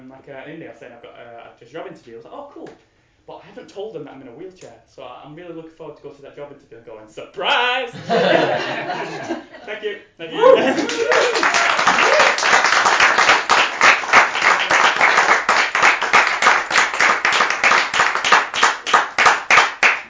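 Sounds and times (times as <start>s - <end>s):
speech: 0.1s - 11.6s
laughter: 7.9s - 12.2s
audience applause: 10.4s - 20.0s.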